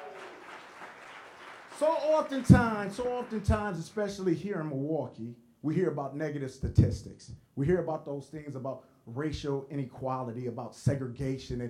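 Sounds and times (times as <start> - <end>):
audience clapping: 0.0 - 4.2
speech: 1.8 - 11.6.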